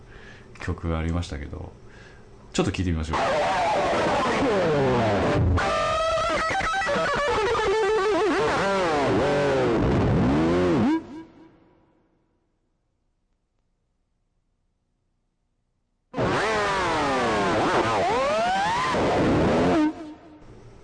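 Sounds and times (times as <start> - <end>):
speech: 0.7 - 1.8, 2.6 - 5.8, 6.4 - 9.4
distorted electric guitar: 3.1 - 11.7, 16.2 - 20.4.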